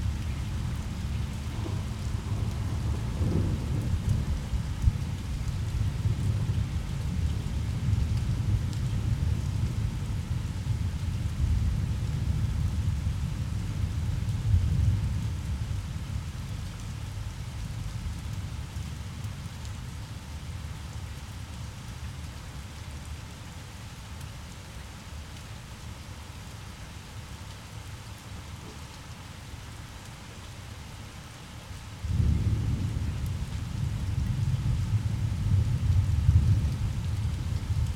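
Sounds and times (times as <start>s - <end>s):
thunder rumble: 0.0s - 10.0s, 32.1s - 37.9s
rain: 0.0s - 37.9s.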